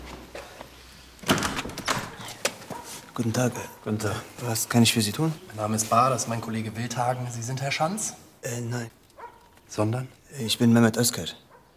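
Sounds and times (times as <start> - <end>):
door being unlatched and opened: 1.2 - 2.6
speech: 3.2 - 9.0, 9.7 - 11.5.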